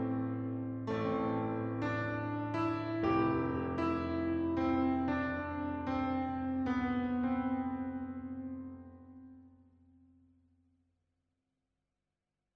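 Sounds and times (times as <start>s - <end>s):
ambient piano: 0.0s - 10.0s.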